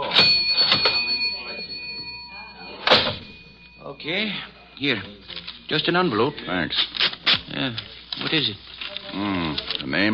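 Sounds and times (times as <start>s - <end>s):
cash register drawer opening: 0.0s - 1.2s, 2.8s - 3.4s
cash register bell ringing: 0.0s - 5.0s
speech: 4.0s - 10.1s.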